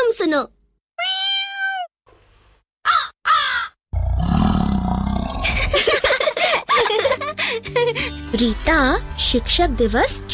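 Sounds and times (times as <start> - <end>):
speech: 0.2 - 0.6, 6.9 - 10.3
person imitating meow: 1.0 - 1.9
person imitating crow caws: 2.8 - 3.8
person imitating lion roar: 4.0 - 5.6.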